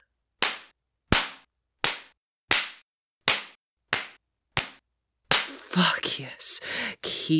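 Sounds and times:
belt lashes striking skin: 0.4 - 5.6
speech: 5.8 - 7.3.

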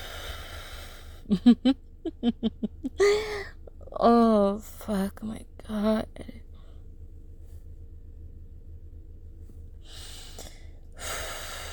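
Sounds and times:
person practising breathing: 0.0 - 1.3, 9.8 - 11.7
laughter: 1.3 - 3.2
speech: 1.3 - 6.4.

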